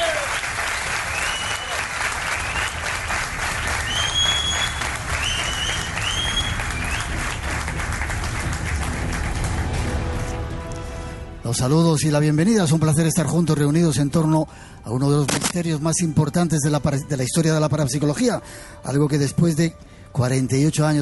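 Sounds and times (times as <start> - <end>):
audience applause: 0.0 - 10.6
speech: 11.5 - 21.0.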